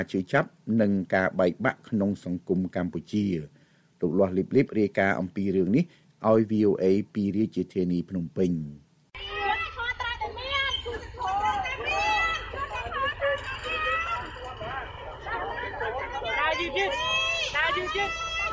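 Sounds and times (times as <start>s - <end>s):
speech: 0.0s - 8.8s
crowd of marchers chattering on a walking march in Phnom Penh: 9.2s - 18.5s.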